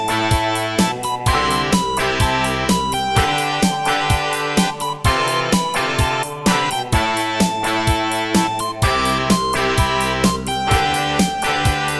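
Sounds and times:
Raptor Wave 1 synthesizer sound from MidiPlus MiniEngine USB: 0.0s - 11.9s.

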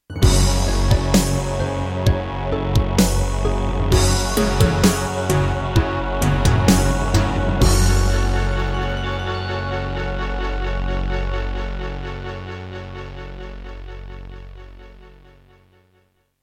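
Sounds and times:
MidiPlus MiniEngine USB sound module: 0.1s - 11.4s.

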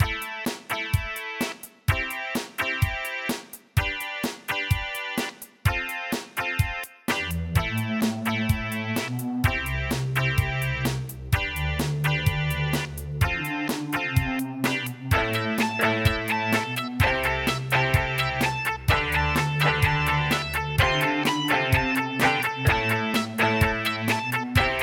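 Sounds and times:
Casio CTK-2100 electronic keyboard: 0.0s - 24.8s.

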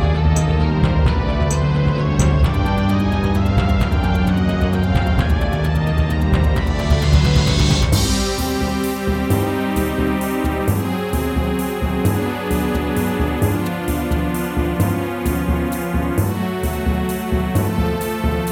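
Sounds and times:
wavetable synthesizer module: 0.0s - 18.5s.

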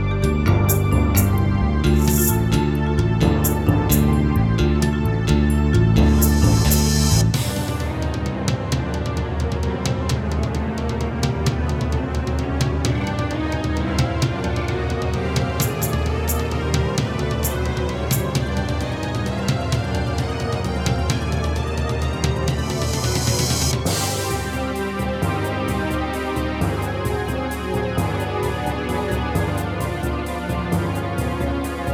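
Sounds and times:
Yamaha DD-55 electronic drum pad: 0.0s - 31.9s.

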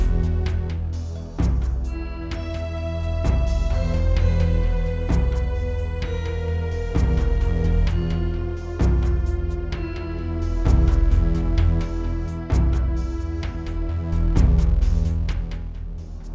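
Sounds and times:
Yamaha DTXpress: 0.0s - 5.8s, 7.0s - 16.1s.

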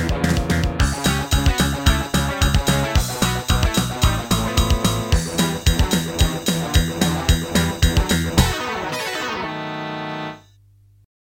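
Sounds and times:
midi synthesizer music: 0.8s - 10.4s.

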